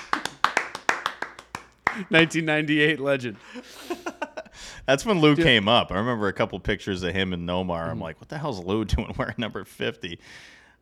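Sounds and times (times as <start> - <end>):
round of applause: 0.0 - 2.3
speech: 2.0 - 4.2, 4.8 - 10.6
laughter: 3.4 - 5.4.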